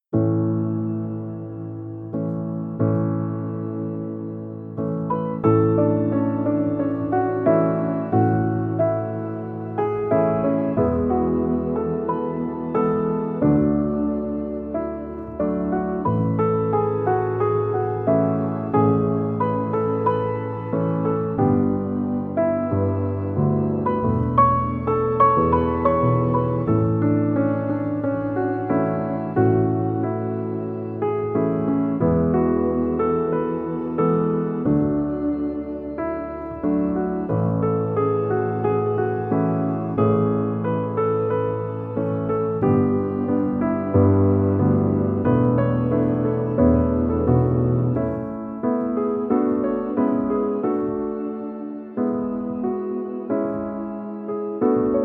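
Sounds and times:
peaceful piano: 0.0 - 55.0.

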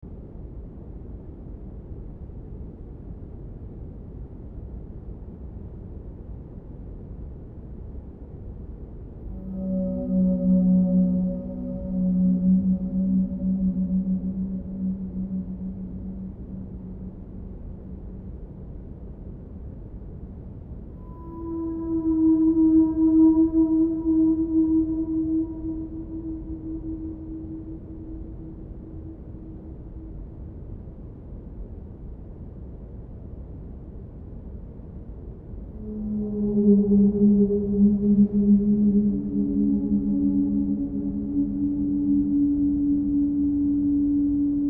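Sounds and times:
binaural whale sound: 9.2 - 18.9, 20.9 - 30.7, 35.7 - 44.6.

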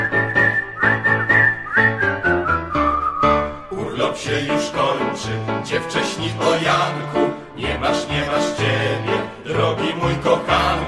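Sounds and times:
whistled melody: 0.0 - 3.9
speech: 4.2 - 10.8.

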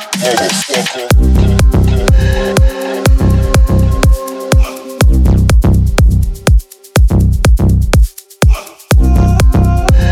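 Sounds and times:
loud club bass on front car audio: 0.2 - 4.1, 5.0 - 6.5, 7.0 - 8.0, 8.9 - 10.1.

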